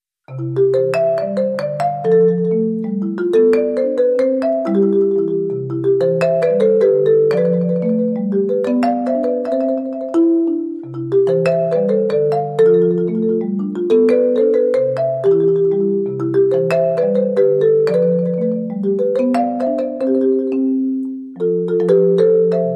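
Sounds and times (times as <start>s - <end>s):
solo marimba: 0.3s - 22.7s.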